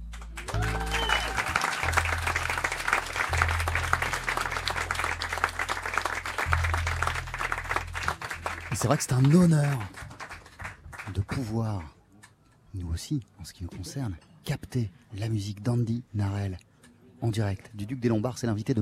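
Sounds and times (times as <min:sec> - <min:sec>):
audience applause and cheering for a musician: 0:00.0 - 0:11.3
speech: 0:08.8 - 0:10.0, 0:11.4 - 0:12.0, 0:12.8 - 0:18.7.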